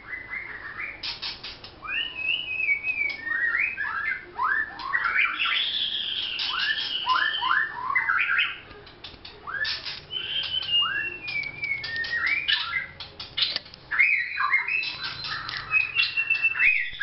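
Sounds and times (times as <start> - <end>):
White-rumped shama song: 1.8 - 8.6, 9.5 - 12.9, 13.9 - 17.0
sharp clicks: 8.7 - 13.8, 14.7 - 16.5.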